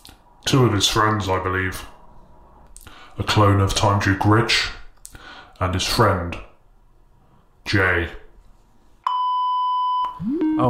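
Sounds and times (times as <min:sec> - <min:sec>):
speech: 0:00.5 - 0:02.0, 0:03.2 - 0:04.8, 0:05.6 - 0:06.5, 0:07.7 - 0:08.2, 0:10.2 - 0:10.6
phone beep: 0:09.1 - 0:10.6
upward-sliding chirp: 0:10.1 - 0:10.6.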